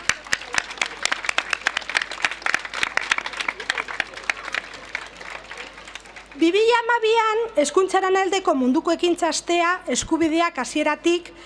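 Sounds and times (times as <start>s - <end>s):
audience applause: 0.0s - 6.4s
speech: 6.4s - 11.4s.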